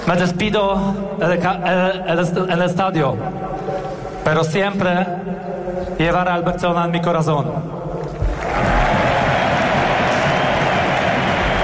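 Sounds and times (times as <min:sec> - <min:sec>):
speech: 0:00.1 - 0:07.8
large stadium crowd applauding: 0:08.2 - 0:11.6.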